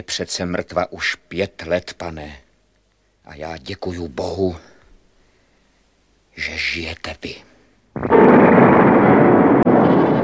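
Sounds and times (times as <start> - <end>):
speech: 0.0 - 2.4, 3.3 - 4.7, 6.4 - 8.3
castle main tower collapsing: 8.0 - 10.2
massive explosion shaking castle: 8.0 - 10.2.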